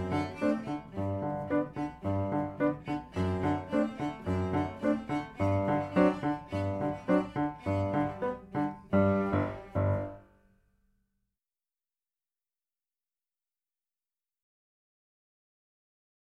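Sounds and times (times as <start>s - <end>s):
cello: 0.0s - 10.3s
piano: 0.0s - 10.7s.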